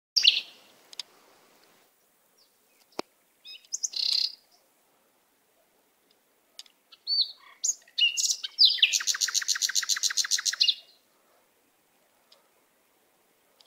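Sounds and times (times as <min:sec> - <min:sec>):
canary singing whistled notes and trills: 0:00.2 - 0:00.6, 0:03.4 - 0:04.4, 0:06.9 - 0:11.0.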